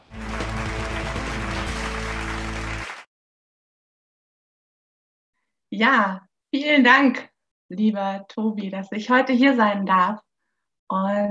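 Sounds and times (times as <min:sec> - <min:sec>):
virtual applause: 0:00.0 - 0:03.1
speech: 0:05.7 - 0:10.3, 0:10.9 - 0:11.2.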